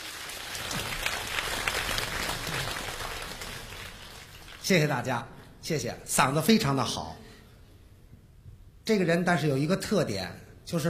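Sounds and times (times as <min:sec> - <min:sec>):
audience applause welcoming performer: 0:00.0 - 0:04.7
speech: 0:04.7 - 0:07.2, 0:08.9 - 0:10.8.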